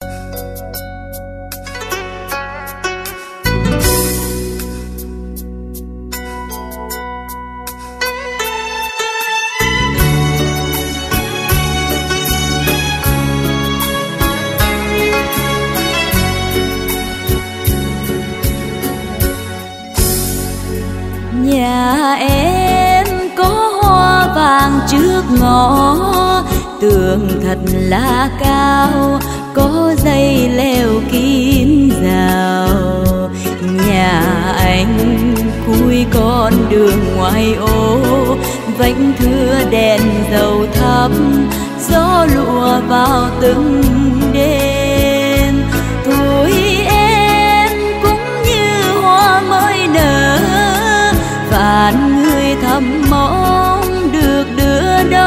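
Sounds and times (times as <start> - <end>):
live ballad music medley: 0.0 - 55.2.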